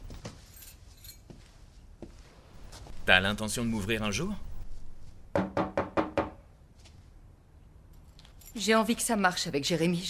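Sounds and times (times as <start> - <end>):
low noise: 0.0 - 10.0
keys jangling: 0.1 - 1.3, 8.0 - 8.7
speech: 3.1 - 4.5, 8.6 - 10.0.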